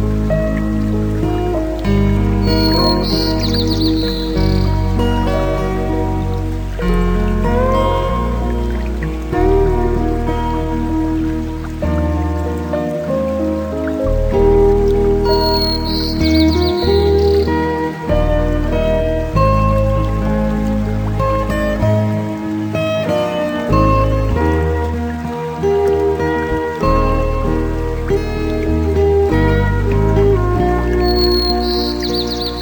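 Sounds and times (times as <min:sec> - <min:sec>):
clean and clear guitar: 0:00.0 - 0:32.5.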